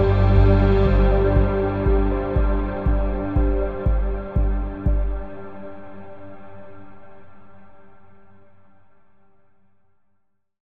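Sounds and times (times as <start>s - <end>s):
ambient music: 0.0s - 8.5s.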